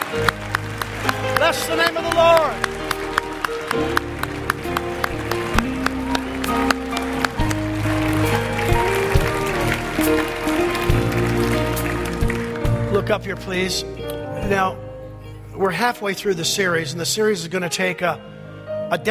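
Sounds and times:
audience clapping: 0.0s - 13.2s
speech: 1.5s - 2.7s, 3.7s - 4.1s, 13.1s - 14.8s, 15.6s - 19.1s.

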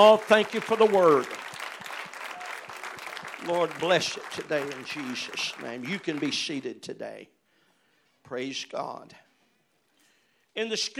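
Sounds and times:
speech: 0.0s - 1.4s, 3.4s - 7.4s, 8.2s - 9.2s, 10.6s - 10.9s
audience hand clapping: 0.0s - 6.7s.

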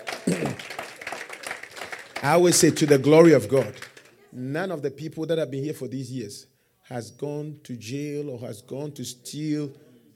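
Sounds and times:
audience clapping: 0.0s - 4.2s
speech: 2.2s - 9.8s.

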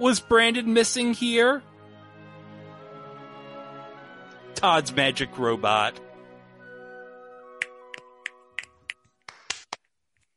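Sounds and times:
speech: 0.0s - 1.7s, 4.6s - 6.0s
finger snaps: 7.6s - 9.8s
hand claps: 7.6s - 9.9s.

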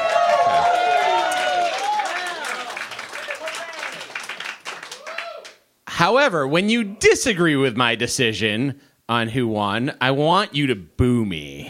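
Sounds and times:
audience cheering and clapping: 0.0s - 5.6s
speech: 6.0s - 11.6s.

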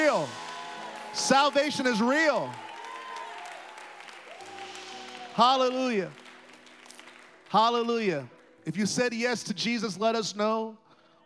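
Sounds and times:
audience clapping: 0.0s - 8.8s
speech: 1.2s - 2.6s, 5.4s - 6.2s, 7.5s - 11.2s.

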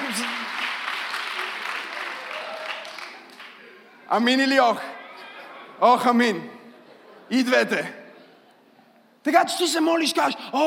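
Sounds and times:
crowd applause: 0.0s - 3.9s
speech: 4.1s - 5.0s, 5.8s - 6.6s, 7.3s - 8.0s, 9.2s - 10.6s.

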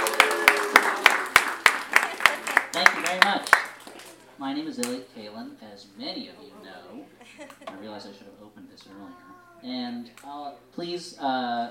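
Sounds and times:
audience applause: 0.0s - 4.2s
speech: 4.5s - 11.6s.

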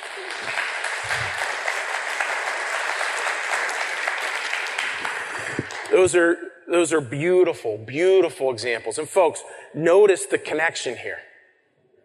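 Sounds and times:
audience applause: 0.0s - 6.0s
speech: 5.9s - 11.3s.

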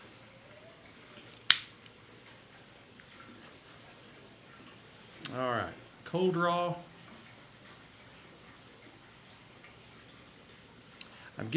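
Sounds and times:
Cassetti dual cutter V-cut snip on an Eiroa Classic cigar: 1.4s - 1.7s
speech: 5.4s - 6.9s, 11.4s - 11.5s.

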